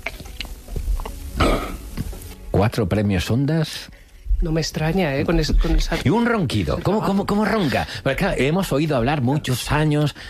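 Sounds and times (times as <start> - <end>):
swallowing saliva: 0.0 - 2.3
speech: 2.6 - 10.2.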